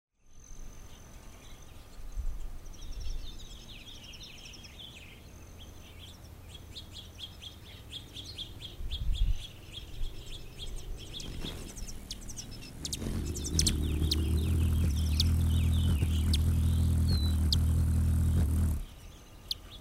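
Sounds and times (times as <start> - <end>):
hummingbird thin very high sustained whines: 11.2 - 19.0.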